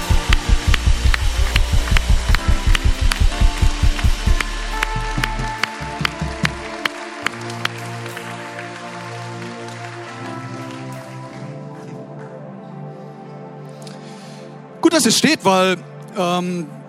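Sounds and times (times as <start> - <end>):
audience applause: 0.0 - 11.7
speech: 15.0 - 16.8.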